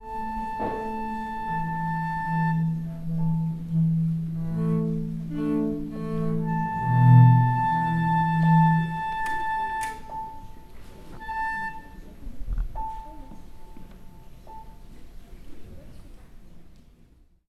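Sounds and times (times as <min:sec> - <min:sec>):
quartet tuning: 0:00.0 - 0:12.2.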